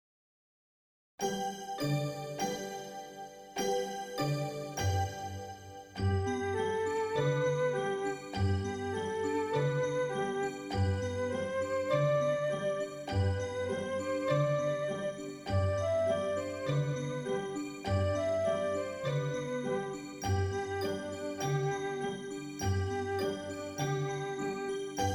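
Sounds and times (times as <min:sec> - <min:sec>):
instrumental music: 0:01.2 - 0:25.1.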